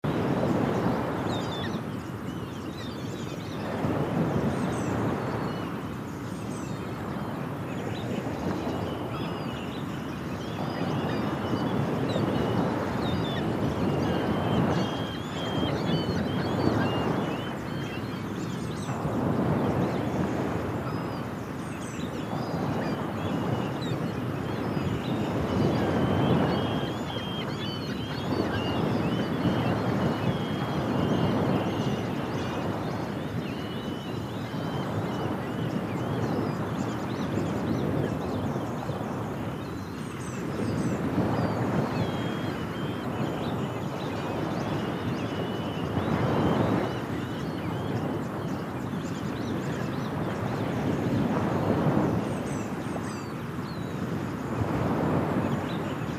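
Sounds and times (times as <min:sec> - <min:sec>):
birds: 0:00.0 - 0:56.1
ocean: 0:00.0 - 0:56.1.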